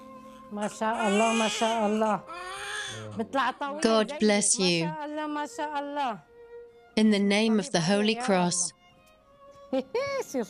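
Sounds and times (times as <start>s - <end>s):
newborn baby crying: 0.1s - 3.4s
speech: 0.5s - 6.3s, 7.0s - 8.8s, 9.7s - 10.4s.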